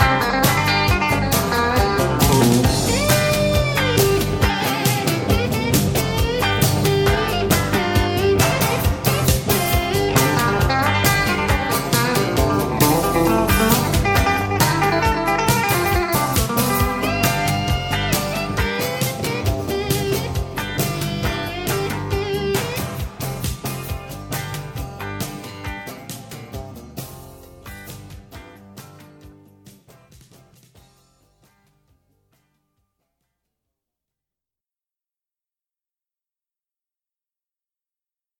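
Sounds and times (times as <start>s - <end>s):
heavy rock guitars: 0.0s - 29.0s.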